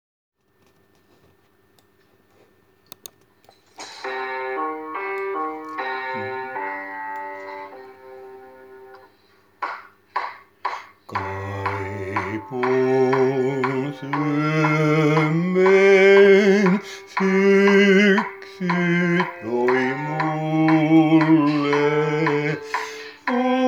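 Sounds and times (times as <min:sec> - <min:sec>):
tenor singing: 0:11.1 - 0:23.6.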